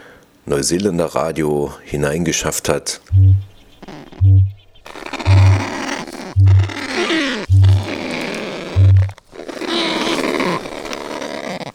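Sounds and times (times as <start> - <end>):
speech: 0.4 - 3.4
kakapo night call: 3.4 - 11.4.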